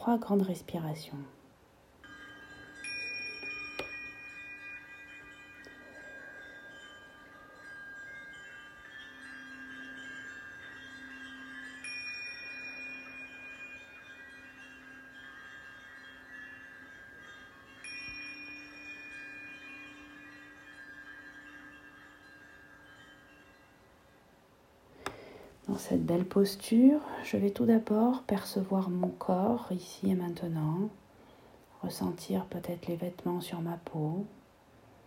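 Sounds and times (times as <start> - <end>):
speech: 0.0 - 1.4, 25.8 - 31.0, 31.8 - 34.4
meditation bells ringing: 2.0 - 28.8.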